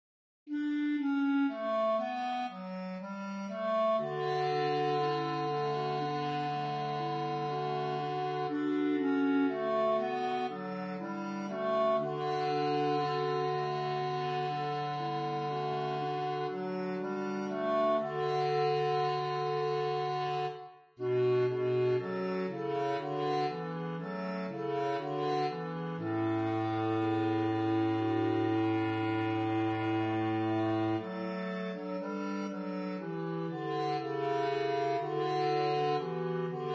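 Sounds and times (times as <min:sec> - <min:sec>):
bass: 0:00.5 - 0:36.7.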